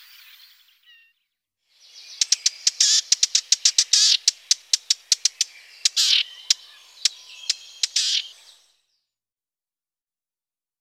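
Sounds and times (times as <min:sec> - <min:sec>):
Eurasian blackcap warbling and whistling song: 0:02.0 - 0:08.6.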